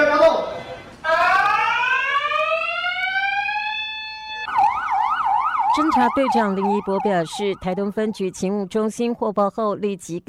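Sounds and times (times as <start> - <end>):
post office alarm during a robbery: 1.1 - 8.5
speech: 5.9 - 10.2.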